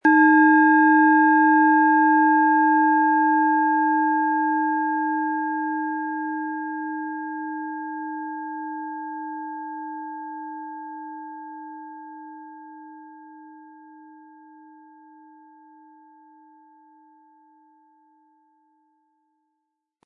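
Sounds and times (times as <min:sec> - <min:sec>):
Eros planetary singing bowl struck with mallet: 0:00.0 - 0:10.5.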